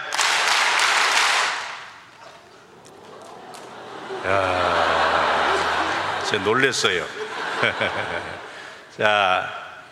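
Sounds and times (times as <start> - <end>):
audience clapping: 0.0 - 8.4
low murmur: 2.4 - 8.7
laughter: 2.6 - 9.2
speech: 4.2 - 4.6, 6.3 - 9.6.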